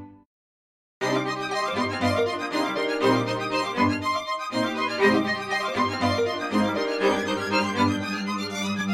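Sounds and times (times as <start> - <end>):
orchestral music: 1.0 - 8.9.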